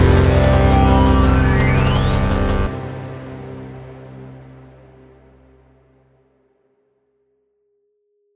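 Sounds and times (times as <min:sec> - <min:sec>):
grooving bassy saxophone: 0:00.0 - 0:03.4
relaxing electronica: 0:00.0 - 0:05.4.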